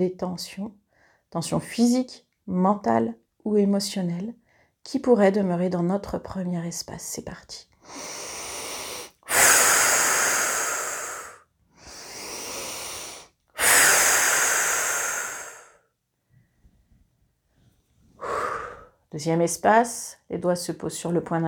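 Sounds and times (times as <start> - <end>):
speech: 0.0 - 8.3, 19.1 - 21.4
slow exhaling breaths during a guided relaxation exercise: 7.8 - 15.8, 18.2 - 19.0.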